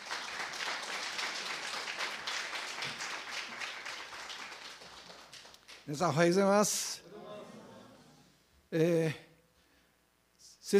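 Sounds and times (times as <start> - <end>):
applause: 0.0 - 6.3
speech: 5.9 - 7.0, 8.7 - 9.2.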